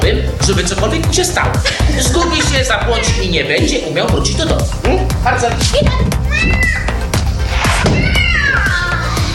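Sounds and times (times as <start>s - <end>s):
speech: 0.6s - 6.9s
laughter: 1.2s - 4.7s
cat meowing: 6.2s - 9.2s.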